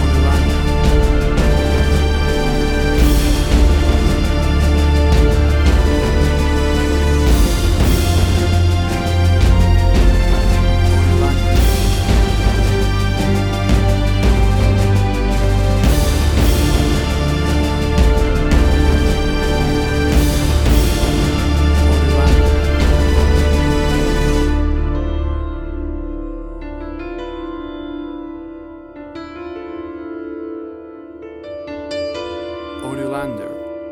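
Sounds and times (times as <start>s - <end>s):
big powerful dramatic action superhero music: 0.0s - 26.3s.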